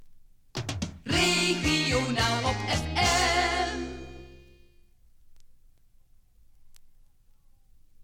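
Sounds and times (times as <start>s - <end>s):
maxi jingle single: 1.1s - 4.8s.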